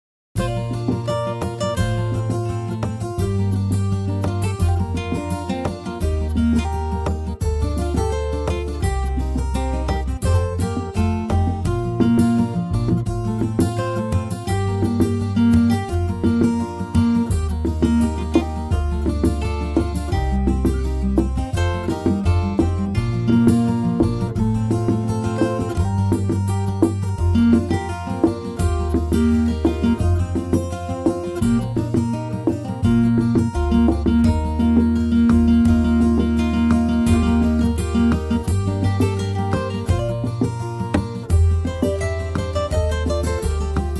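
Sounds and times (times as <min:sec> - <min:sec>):
guitars in B flat and C: 0:00.4 - 0:43.9.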